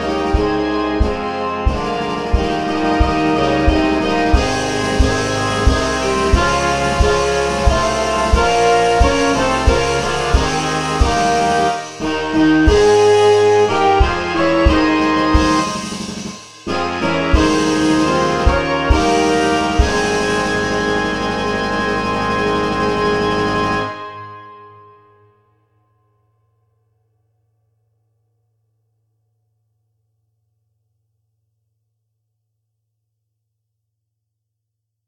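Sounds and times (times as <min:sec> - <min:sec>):
national anthem: 0:00.0 - 0:25.0.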